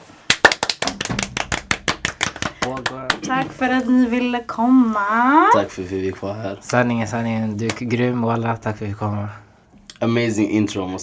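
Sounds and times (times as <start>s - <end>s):
applause: 0.3s - 3.4s
speech: 2.6s - 9.4s, 10.0s - 11.0s.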